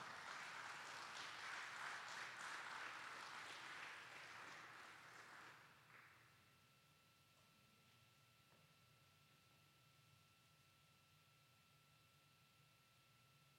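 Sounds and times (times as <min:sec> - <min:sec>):
crowd welcome round of applause: 0:00.0 - 0:06.2.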